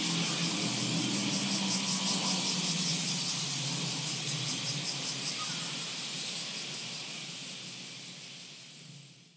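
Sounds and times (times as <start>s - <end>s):
Kumazemi cicada singing in summer: 0.0s - 6.4s.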